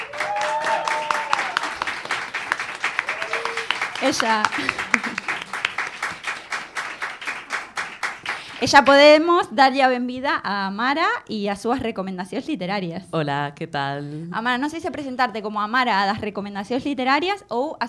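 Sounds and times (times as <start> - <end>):
audience applause: 0.0 - 8.8
laughter: 3.1 - 5.7
speech: 4.0 - 4.9, 8.6 - 17.8.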